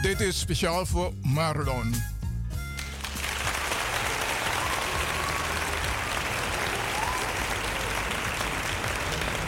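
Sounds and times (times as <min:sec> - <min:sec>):
speech: 0:00.1 - 0:02.1
crowd applause: 0:02.8 - 0:09.4.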